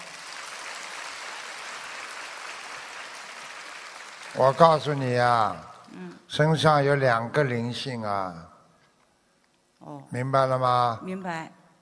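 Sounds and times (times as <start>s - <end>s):
crowd applause: 0.0s - 5.8s
speech: 4.4s - 8.5s, 9.8s - 11.6s.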